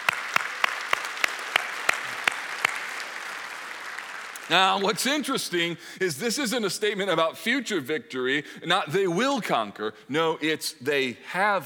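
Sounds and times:
audience applauding: 0:00.0 - 0:05.3
speech: 0:04.5 - 0:11.6.

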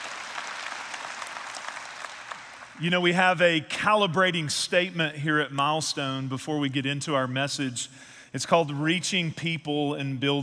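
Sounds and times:
church audience applause: 0:00.0 - 0:02.8
speech: 0:02.8 - 0:10.4.

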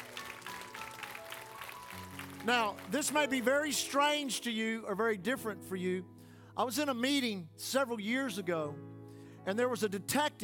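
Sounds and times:
audience hand clapping: 0:00.0 - 0:03.8
speech: 0:02.4 - 0:10.4.

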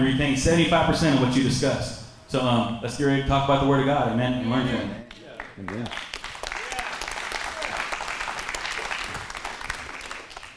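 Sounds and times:
speech: 0:00.0 - 0:05.0, 0:05.6 - 0:06.0
audience hand clapping: 0:05.1 - 0:10.5.

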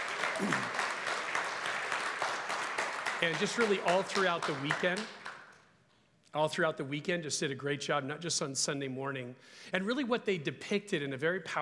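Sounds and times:
audience round of applause: 0:00.0 - 0:05.6
speech: 0:00.4 - 0:00.8, 0:03.2 - 0:05.2, 0:06.3 - 0:11.5.

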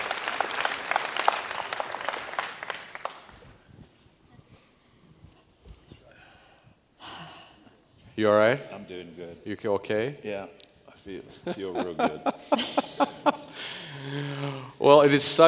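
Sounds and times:
audience applause at a morning gathering as two guests come up: 0:00.0 - 0:03.7
speech: 0:08.2 - 0:13.3, 0:14.8 - 0:15.4
laughter: 0:11.2 - 0:14.6.

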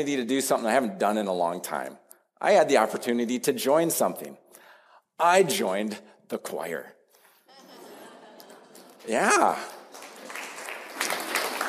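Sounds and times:
speech: 0:00.0 - 0:04.5, 0:05.2 - 0:07.0, 0:09.0 - 0:09.8
laughter: 0:07.5 - 0:09.4
audience clapping: 0:08.3 - 0:11.6.

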